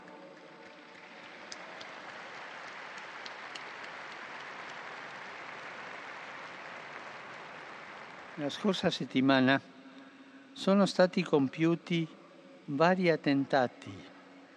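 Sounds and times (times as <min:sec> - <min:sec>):
large crowd applauding: 0:00.0 - 0:09.0
speech: 0:08.4 - 0:09.7, 0:10.6 - 0:14.1.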